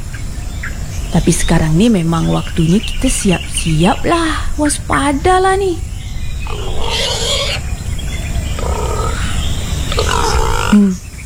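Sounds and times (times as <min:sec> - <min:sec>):
speech: 0:01.1 - 0:05.9, 0:10.7 - 0:11.0
pig grunting: 0:06.3 - 0:11.1.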